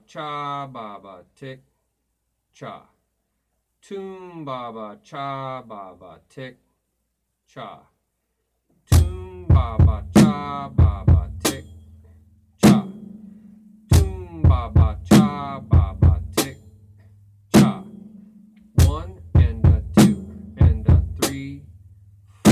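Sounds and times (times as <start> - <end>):
drum beat: 8.9 - 11.8, 12.6 - 16.7, 17.5 - 21.7, 22.4 - 22.5.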